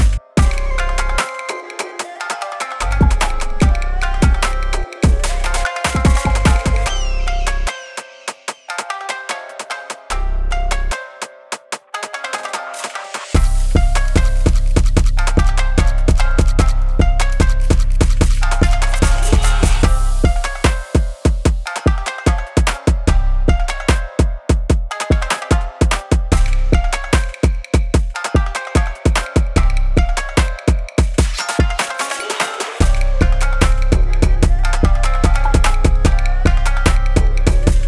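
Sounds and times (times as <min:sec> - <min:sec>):
jersey drill beat in C minor: 0:00.0 - 0:08.9, 0:12.8 - 0:37.8.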